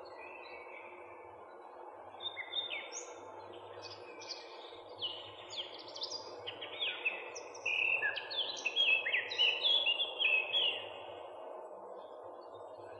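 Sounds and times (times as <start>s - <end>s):
Eurasian Blackcap song: 2.2s - 11.0s.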